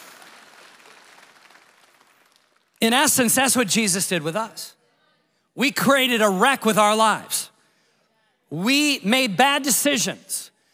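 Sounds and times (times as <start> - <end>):
audience applause during a church sermon: 0.0 - 2.8
speech: 2.8 - 4.8, 5.6 - 7.5, 8.5 - 10.5.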